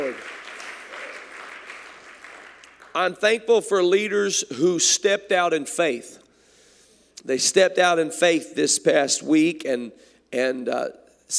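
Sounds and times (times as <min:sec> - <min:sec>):
audience hand clapping: 0:00.0 - 0:03.4
speech: 0:02.9 - 0:06.2, 0:07.2 - 0:11.3.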